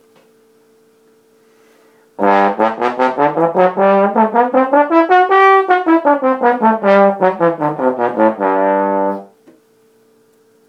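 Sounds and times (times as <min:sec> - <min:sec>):
trombone: 0:02.2 - 0:09.4.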